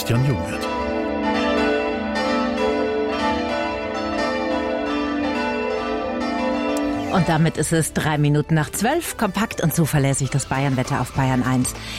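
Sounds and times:
church bell quartet in Hammelburg campanile ringing at noon: 0.0 - 9.3
speech: 0.1 - 1.4, 7.1 - 11.9.

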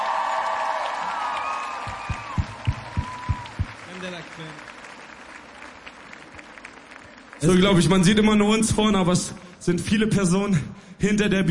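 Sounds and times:
audience cheering: 0.0 - 6.7
audience applause: 0.0 - 9.7
speech: 7.4 - 11.4.

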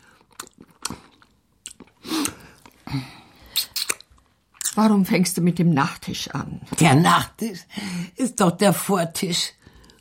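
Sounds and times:
crunchy chewing and biting as people eat a meal together: 0.0 - 2.8
speech: 2.9 - 3.2, 4.8 - 9.6.

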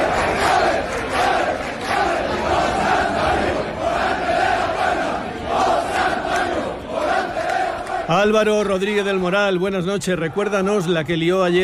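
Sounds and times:
large crowd cheering and shouting in the streets: 0.0 - 11.3
speech: 8.1 - 11.6.

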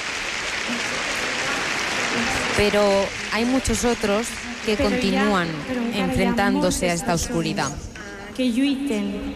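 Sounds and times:
audience applause with the Pope clapping: 0.0 - 6.6
speech: 2.6 - 9.3.

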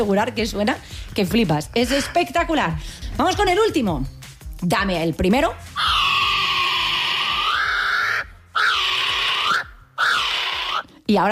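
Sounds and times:
speech: 0.0 - 6.0, 11.1 - 11.3
harsh screeching bird call: 5.8 - 10.9.

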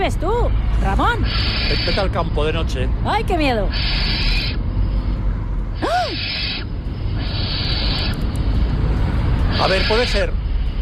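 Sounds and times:
speech: 0.0 - 4.4, 9.6 - 10.4
steady noisy background: 0.0 - 10.8
barn owl screeching at night: 1.0 - 2.7, 3.4 - 4.7, 5.8 - 8.4, 9.4 - 10.5.

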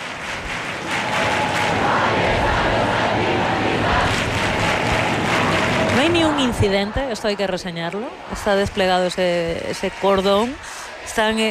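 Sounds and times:
people clapping: 0.0 - 11.5
crowd singing: 0.9 - 11.5
speech: 6.1 - 11.5.

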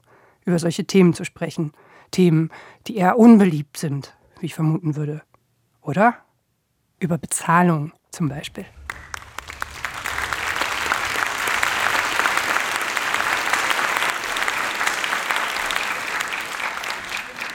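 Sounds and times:
speech: 0.4 - 6.2, 7.0 - 8.8
audience clapping: 8.5 - 17.5.

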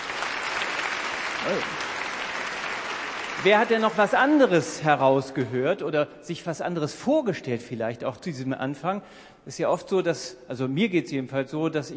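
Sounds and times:
audience applause: 0.0 - 4.6
speech: 1.4 - 1.9, 3.4 - 11.9.

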